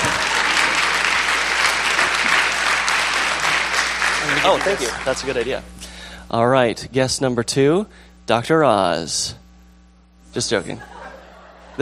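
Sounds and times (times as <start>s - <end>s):
audience applause: 0.0s - 5.6s
speech: 4.4s - 9.4s, 10.3s - 11.0s
laughter: 10.6s - 11.8s.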